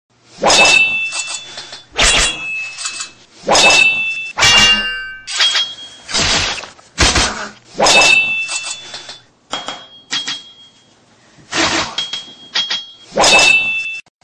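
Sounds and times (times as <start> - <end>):
sword: 0.4 - 9.2, 11.5 - 14.0.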